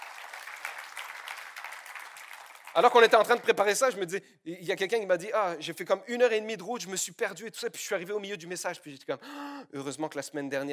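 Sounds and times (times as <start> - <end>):
audience applause for people who travelled far: 0.0 - 3.2
speech: 2.8 - 10.7.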